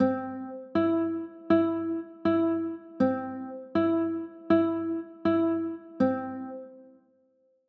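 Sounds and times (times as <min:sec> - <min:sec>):
A minor chords: 0:00.0 - 0:07.0.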